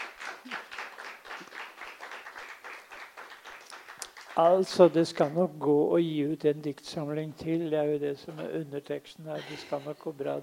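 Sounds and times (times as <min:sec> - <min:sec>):
audience clapping: 0:00.0 - 0:05.4
speech: 0:04.4 - 0:10.4.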